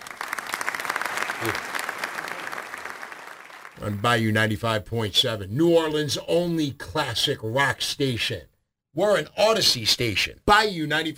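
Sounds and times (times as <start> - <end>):
standing ovation applause: 0.0 - 3.8
low voice: 1.4 - 1.6
speech: 1.4 - 1.7, 3.8 - 11.1.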